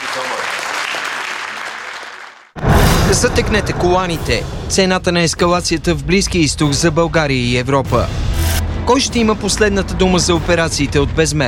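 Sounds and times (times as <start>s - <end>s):
audience applause: 0.0s - 2.6s
speech: 0.2s - 0.6s, 3.1s - 8.2s, 8.8s - 11.4s.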